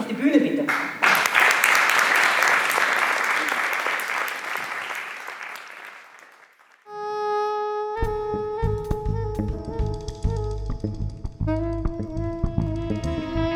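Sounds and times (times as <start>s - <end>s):
crowd applause: 0.2s - 6.9s
sustained tonal musical passage: 7.8s - 13.5s.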